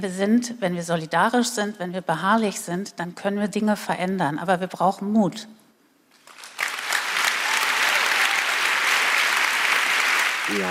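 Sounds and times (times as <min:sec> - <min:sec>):
speech: 0:00.0 - 0:05.6
audience applause: 0:06.2 - 0:10.7.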